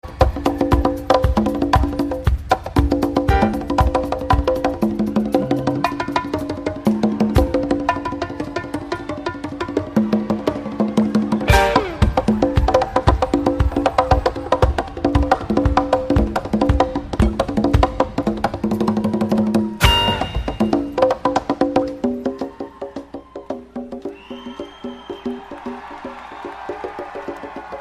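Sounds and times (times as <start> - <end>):
percussion jam: 0.0 - 27.8.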